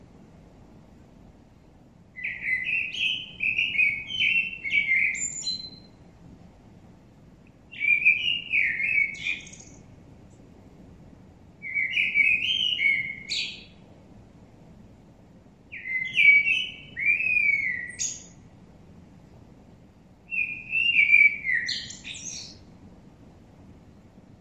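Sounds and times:
common blackbird Turdus merula song: 0:02.2 - 0:06.0, 0:07.7 - 0:09.9, 0:11.6 - 0:13.8, 0:15.7 - 0:18.5, 0:20.3 - 0:22.7.

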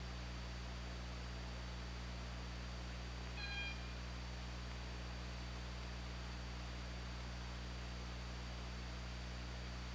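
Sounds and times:
low droning hum: 0:00.0 - 0:09.9
orca harmonic call: 0:03.4 - 0:04.0.

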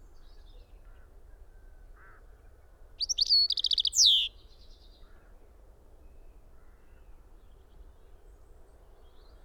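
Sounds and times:
European robin singing: 0:03.0 - 0:04.3.

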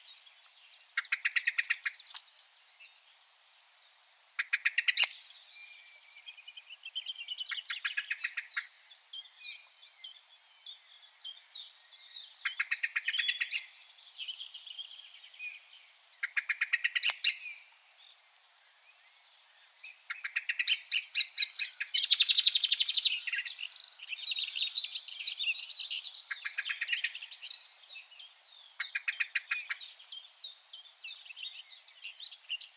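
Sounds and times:
thin high chirps and whistles from other small birds: 0:00.0 - 0:32.7
common blackbird calls: 0:00.8 - 0:02.3, 0:04.4 - 0:06.0, 0:07.0 - 0:08.8, 0:12.4 - 0:13.8, 0:16.2 - 0:17.8, 0:19.6 - 0:27.9, 0:28.8 - 0:32.7.

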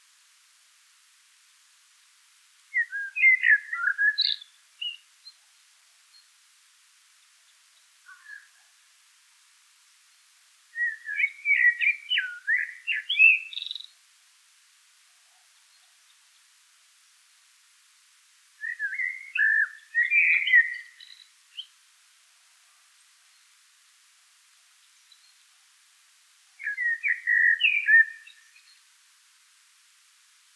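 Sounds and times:
Eurasian blackbird singing fluty phrases: 0:02.8 - 0:05.0, 0:10.8 - 0:13.9, 0:18.6 - 0:21.7, 0:26.6 - 0:28.8.

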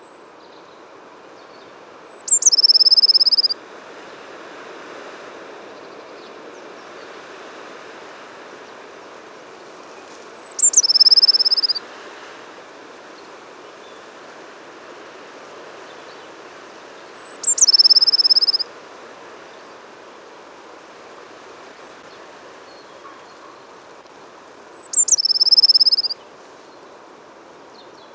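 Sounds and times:
hiss: 0:00.0 - 0:28.1
Eurasian blue tit song: 0:01.4 - 0:03.6, 0:10.2 - 0:11.8, 0:17.1 - 0:18.6, 0:24.6 - 0:26.2.

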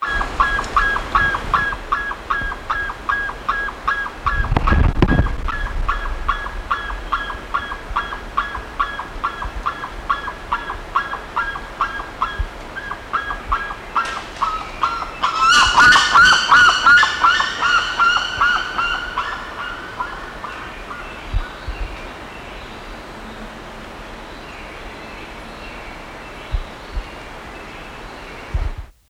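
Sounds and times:
bird nasal honking calls: 0:00.0 - 0:21.6.

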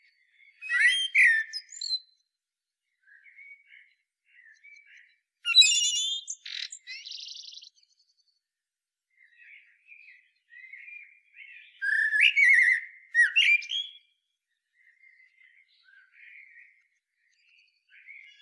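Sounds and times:
common blackbird singing: 0:00.0 - 0:02.2, 0:03.0 - 0:08.0, 0:09.2 - 0:14.2, 0:14.8 - 0:18.4.

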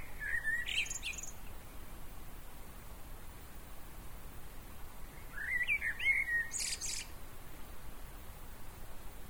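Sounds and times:
common blackbird singing: 0:00.0 - 0:01.4, 0:05.2 - 0:07.1.

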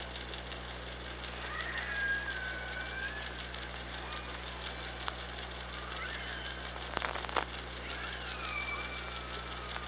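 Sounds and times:
low hum: 0:00.0 - 0:09.8
killer whale call: 0:01.4 - 0:04.5, 0:05.8 - 0:06.7, 0:07.8 - 0:09.8.

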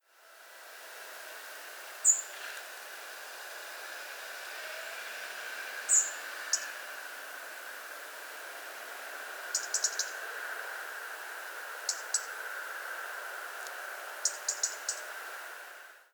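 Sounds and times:
background hiss: 0:00.0 - 0:16.1
European robin ticking calls: 0:02.0 - 0:02.4, 0:05.9 - 0:06.8, 0:09.5 - 0:10.2, 0:11.8 - 0:12.4, 0:14.2 - 0:15.1.

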